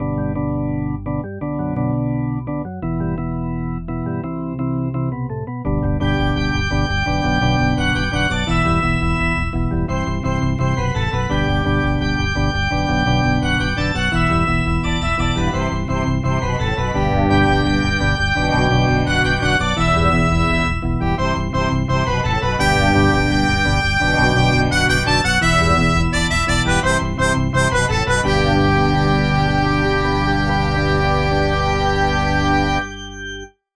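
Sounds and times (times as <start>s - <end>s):
organ: 0.0s - 33.6s.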